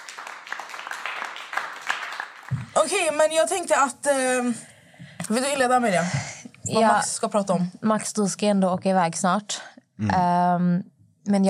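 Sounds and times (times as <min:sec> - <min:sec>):
applause from several hands: 0:00.0 - 0:03.2
speech: 0:02.5 - 0:04.7, 0:05.3 - 0:11.4.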